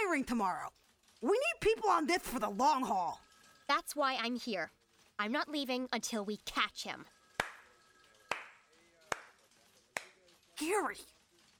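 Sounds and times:
speech: 0.1 - 7.2, 10.6 - 11.2
slow clap: 7.4 - 7.7, 8.3 - 9.4, 10.0 - 10.2.

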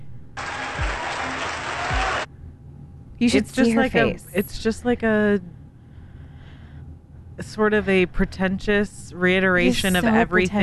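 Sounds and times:
audience applause: 0.4 - 2.3
speech: 3.2 - 5.6, 7.4 - 10.6.

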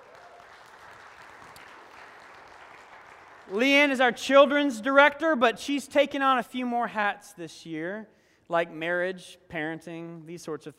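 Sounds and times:
audience applause: 0.0 - 3.6
speech: 3.5 - 10.7.

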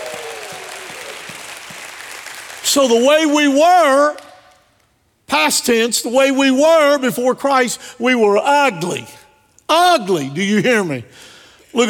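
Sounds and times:
audience clapping: 0.0 - 3.3
speech: 2.7 - 4.2, 5.3 - 11.8.

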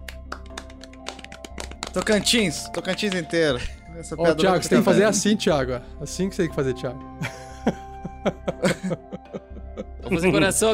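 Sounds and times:
audience clapping: 0.0 - 3.6
speech: 2.0 - 9.1, 10.1 - 10.7
laughter: 3.6 - 5.4, 7.2 - 10.7.

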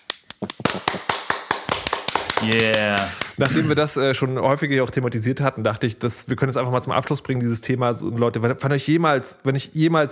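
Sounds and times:
crisp hand claps: 0.0 - 3.6
speech: 2.4 - 10.1.

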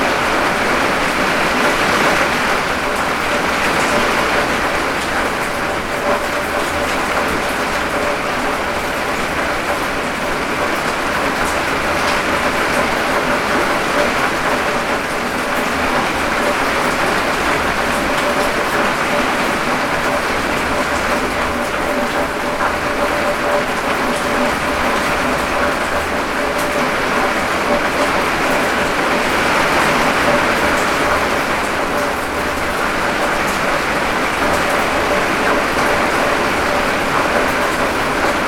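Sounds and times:
rain on a shed roof: 0.0 - 38.4.

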